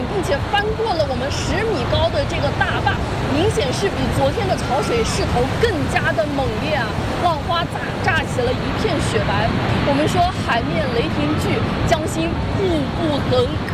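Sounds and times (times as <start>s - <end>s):
people talking excitedly: 0.0s - 13.7s
tidal bore waves crashing over a 10-metre dam: 0.0s - 13.7s.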